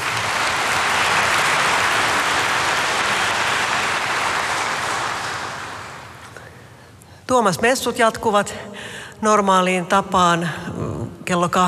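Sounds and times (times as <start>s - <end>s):
audience applause: 0.0s - 6.3s
speech: 7.3s - 10.7s, 11.3s - 11.6s.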